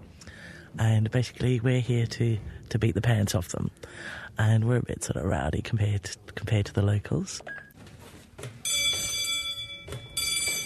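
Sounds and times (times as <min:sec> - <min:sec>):
speech: 0:00.7 - 0:07.6
electric bell signal on a film set: 0:08.6 - 0:10.6.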